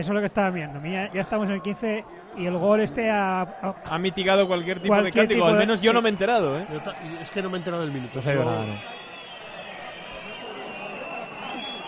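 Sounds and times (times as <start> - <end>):
speech: 0.0 - 9.1
large stadium crowd applauding: 0.0 - 11.8
stadium crowd whistling: 3.9 - 11.8.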